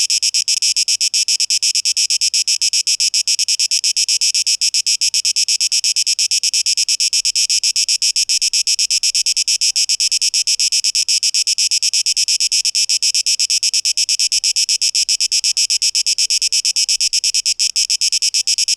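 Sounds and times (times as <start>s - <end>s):
cicada buzzing: 0.2s - 18.7s.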